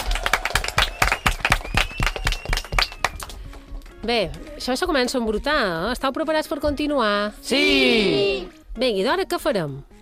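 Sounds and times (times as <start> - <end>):
audience applause: 0.0 - 3.4
speech: 4.0 - 9.9.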